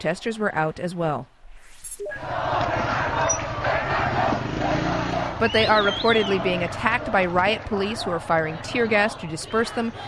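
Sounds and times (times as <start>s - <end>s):
speech: 0.0s - 1.4s, 2.0s - 2.9s, 5.4s - 10.0s
government supporters cheering in Tehran: 2.1s - 10.0s.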